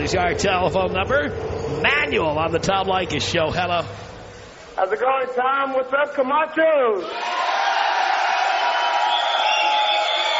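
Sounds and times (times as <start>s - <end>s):
speech: 0.0s - 4.1s, 4.8s - 7.4s
party crowd cheering and whooping at a Cinco de Mayo celebration: 7.0s - 10.3s.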